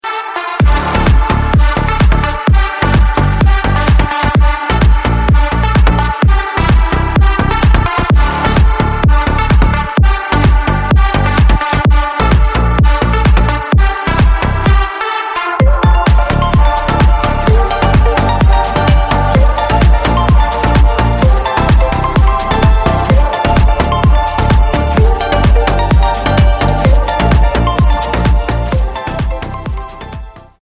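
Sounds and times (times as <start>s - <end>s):
instrumental music: 0.0s - 30.6s.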